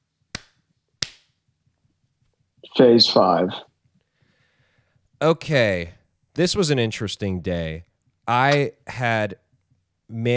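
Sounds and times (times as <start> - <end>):
hand claps: 0.3 - 1.4
speech: 2.7 - 3.7, 5.2 - 9.4, 10.1 - 10.3.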